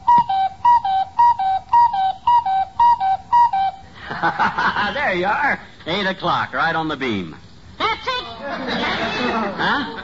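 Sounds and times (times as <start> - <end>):
cuckoo clock calling: 0.0 - 3.9
laughter: 4.0 - 5.2, 8.3 - 10.0
speech: 4.2 - 7.4, 8.7 - 10.0.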